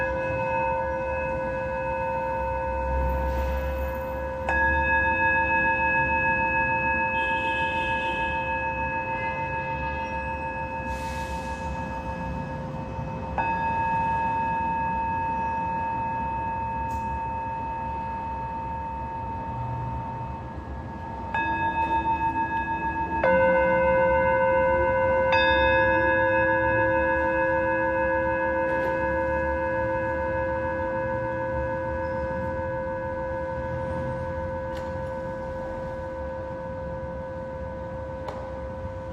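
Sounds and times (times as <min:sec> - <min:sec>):
Tibetan singing bowl ringing: 0:00.0 - 0:39.1.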